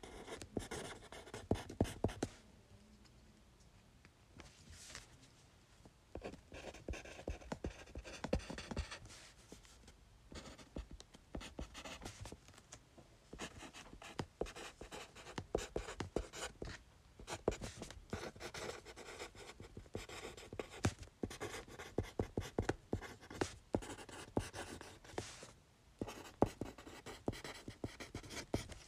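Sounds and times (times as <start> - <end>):
pen scratching during fast writing on paper: 0.0 - 2.3, 6.2 - 9.1, 10.3 - 12.2, 13.4 - 16.6, 17.3 - 25.3, 26.0 - 28.7.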